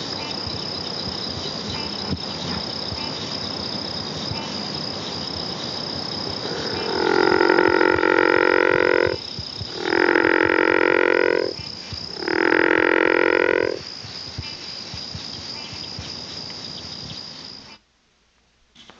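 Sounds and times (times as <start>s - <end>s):
frog croaking in a buzzy pulsed drone: 0.0s - 3.3s, 4.2s - 13.8s.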